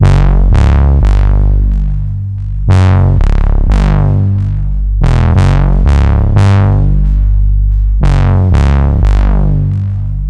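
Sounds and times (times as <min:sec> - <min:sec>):
bass: 0:00.0 - 0:10.2.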